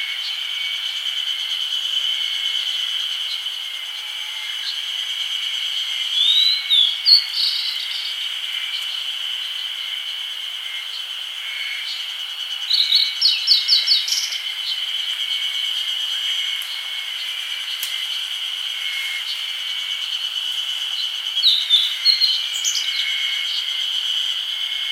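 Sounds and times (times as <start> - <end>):
steady high insect hum: 0.0 - 24.8
grey bunting calling: 6.2 - 8.2, 12.7 - 14.4, 21.4 - 23.7.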